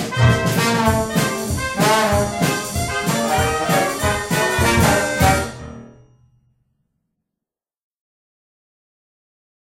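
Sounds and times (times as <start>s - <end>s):
ragtime piece: 0.0s - 6.1s.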